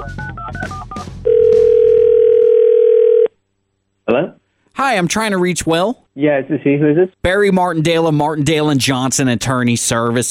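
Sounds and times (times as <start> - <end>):
telephone dial tone: 1.3 - 3.3
speech: 4.8 - 10.2.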